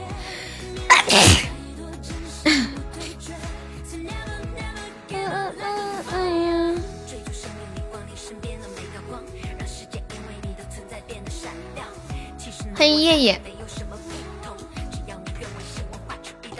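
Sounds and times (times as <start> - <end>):
soft music: 0.0 - 16.5
person sneezing: 0.9 - 1.6, 2.5 - 2.8
speech: 12.8 - 13.5.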